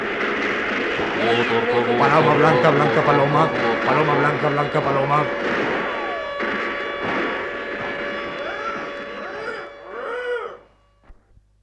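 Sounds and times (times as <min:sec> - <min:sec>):
artillery fire barrage destroying a village: 0:00.0 - 0:09.7
laughter: 0:01.2 - 0:05.4
speech: 0:01.2 - 0:05.7.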